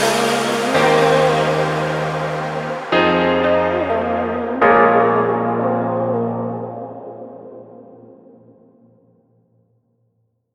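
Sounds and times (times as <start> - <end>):
deep house music: 0.0 - 7.6.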